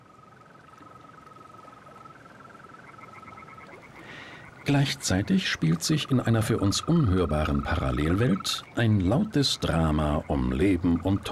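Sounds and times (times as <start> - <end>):
hum: 0.0 - 11.3
green toad calling at night: 2.7 - 11.3
speech: 4.7 - 11.3.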